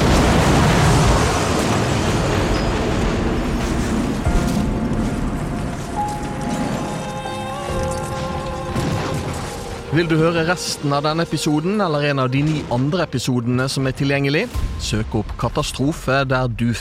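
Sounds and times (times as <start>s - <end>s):
KLM and Pan Am airliners colliding at an airport: 0.0s - 13.9s
speech: 10.0s - 16.7s.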